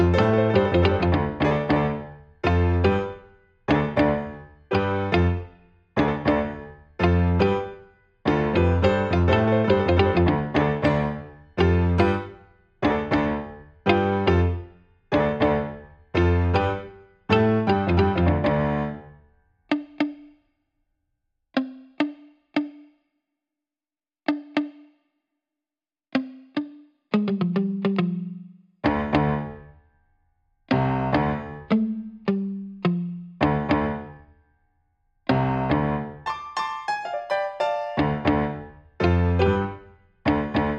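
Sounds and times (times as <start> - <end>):
piano: 0.0 - 19.1, 30.7 - 31.7, 33.4 - 34.2, 35.3 - 40.7
guitar: 0.0 - 20.3, 26.2 - 29.8, 30.7 - 34.3, 35.3 - 40.7.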